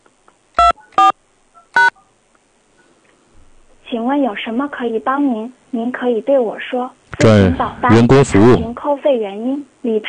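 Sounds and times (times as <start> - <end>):
telephone keypad tones entering a number: 0.6 - 2.1
speech: 4.0 - 10.0.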